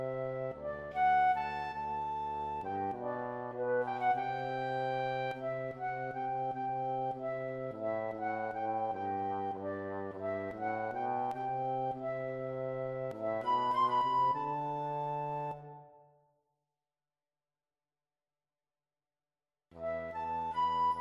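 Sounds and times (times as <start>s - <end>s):
flute: 0.0s - 16.3s, 19.8s - 20.9s
trombone: 2.9s - 13.9s.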